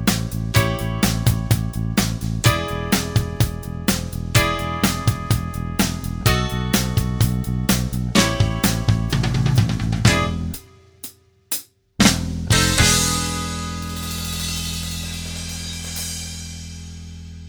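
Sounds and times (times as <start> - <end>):
guitar backing track: 0.0 - 10.6, 12.5 - 15.8.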